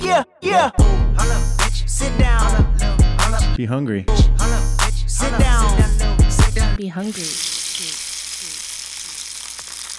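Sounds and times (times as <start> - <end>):
speech: 0.0 - 2.6, 3.6 - 6.0, 6.6 - 8.0
catfish frying in hot oil: 7.0 - 9.9.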